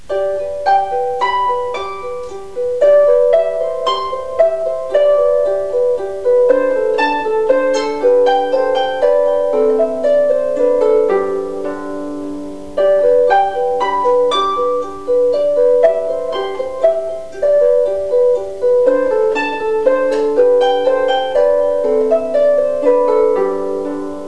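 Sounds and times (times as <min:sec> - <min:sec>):
harp: 0:00.0 - 0:24.2.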